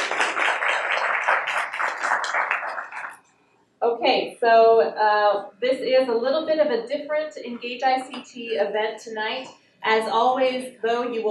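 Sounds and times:
audience applause: 0.0 - 3.2
speech: 4.0 - 11.2.

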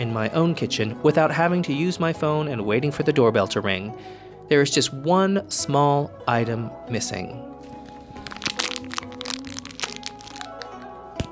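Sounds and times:
speech: 0.0 - 7.8
fortune cookie cracking and breaking apart: 8.2 - 11.3.

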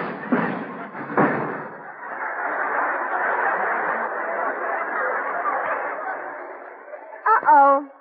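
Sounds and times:
crash of something smashing through a roof: 0.0 - 1.9
laughter: 0.2 - 7.7.

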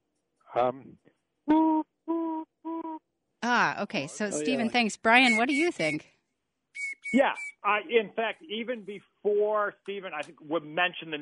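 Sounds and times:
speech: 0.5 - 1.9, 3.5 - 6.1, 7.1 - 11.1
person whistling an imitation of a tufted titmouse's three-note call: 1.5 - 3.0, 5.2 - 6.0, 6.8 - 7.6.

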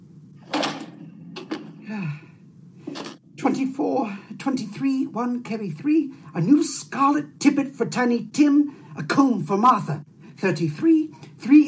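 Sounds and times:
door shutting: 0.4 - 2.0, 2.8 - 3.2
breathy gasps and sighs: 1.8 - 2.5
speech: 3.4 - 11.6.

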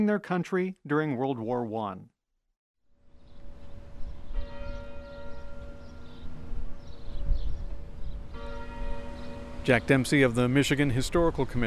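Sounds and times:
speech: 0.0 - 2.1, 9.6 - 11.6
clock tower bells ringing: 3.8 - 7.2, 8.3 - 11.6.

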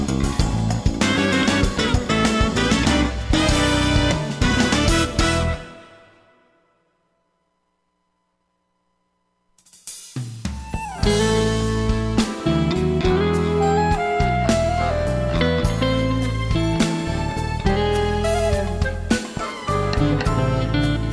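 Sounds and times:
jazz music: 0.0 - 6.4, 10.8 - 21.1.

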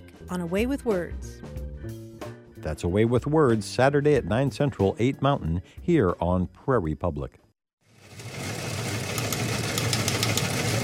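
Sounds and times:
speech: 0.3 - 2.0, 2.6 - 7.4
news wire teletype clicking: 9.2 - 10.6.

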